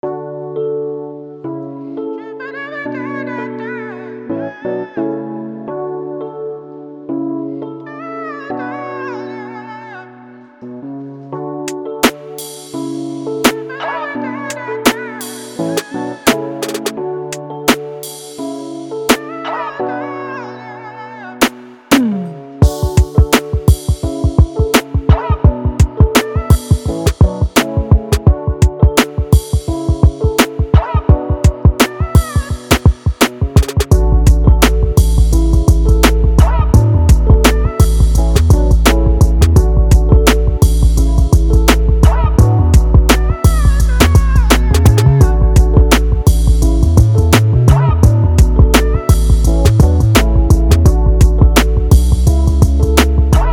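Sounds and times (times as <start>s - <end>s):
music beat: 11.7s - 13.8s, 14.9s - 18.5s, 21.4s - 53.5s.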